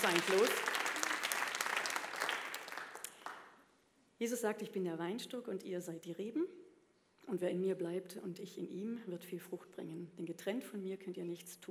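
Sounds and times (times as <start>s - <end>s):
speech: 0.0s - 0.7s, 4.2s - 6.6s, 7.2s - 11.7s
applause: 0.0s - 3.6s.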